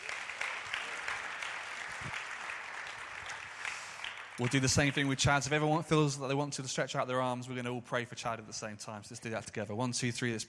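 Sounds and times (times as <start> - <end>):
audience round of applause: 0.0 - 5.7
speech: 4.4 - 10.4.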